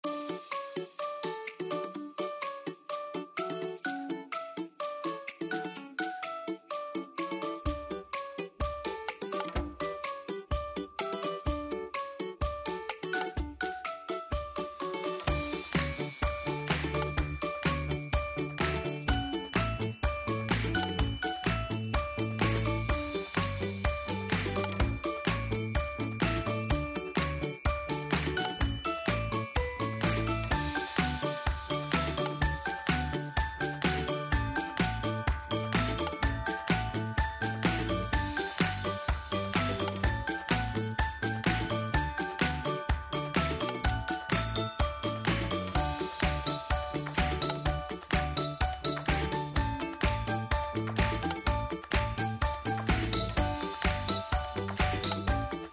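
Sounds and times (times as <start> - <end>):
background music: 0.0 - 55.7.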